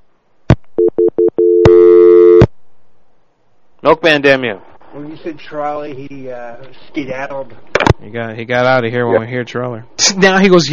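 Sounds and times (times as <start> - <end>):
steady phone tone turning into a buzzy drone: 0.8 - 2.5
speech: 3.8 - 10.7.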